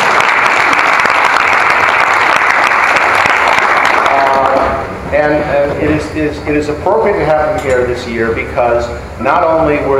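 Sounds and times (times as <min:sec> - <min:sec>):
audience applause: 0:00.0 - 0:04.6
speech: 0:05.8 - 0:09.9.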